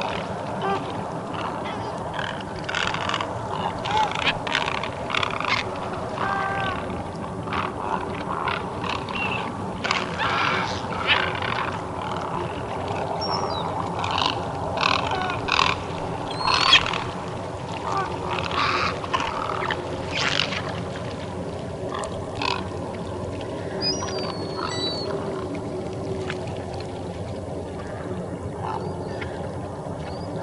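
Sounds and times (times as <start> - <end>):
large wading birds calling: 0.0 - 30.4.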